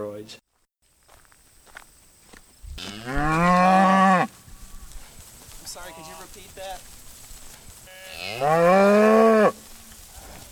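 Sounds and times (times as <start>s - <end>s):
speech: 0.0s - 0.5s, 8.3s - 9.6s
cow mooing in a herd of cattle: 2.8s - 4.3s, 7.9s - 9.6s.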